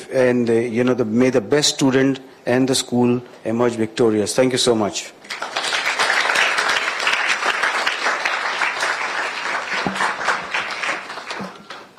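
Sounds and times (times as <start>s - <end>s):
speech: 0.1s - 5.6s
audience applauding: 5.3s - 11.9s.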